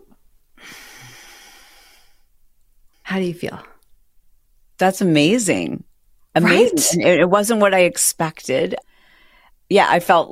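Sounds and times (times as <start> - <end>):
long breathy exhale during a guided breathing exercise: 0.6 - 2.3
speech: 3.2 - 3.7, 4.8 - 8.9, 9.7 - 10.3.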